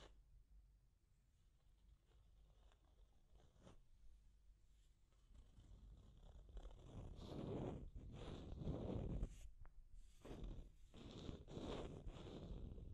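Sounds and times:
deep scratching: 5.4 - 9.5, 10.1 - 12.9.

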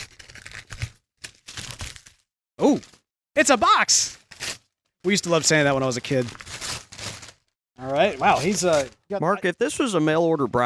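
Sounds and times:
wrapping paper tearing as a wrapped present is ripped open: 0.0 - 3.0, 4.1 - 9.1
speech: 2.6 - 4.2, 5.0 - 6.6, 7.8 - 10.6.

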